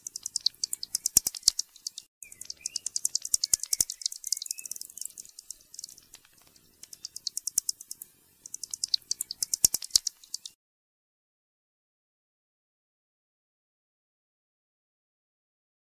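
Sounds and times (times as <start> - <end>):
pipistrelle bat clicks: 0.0 - 10.5.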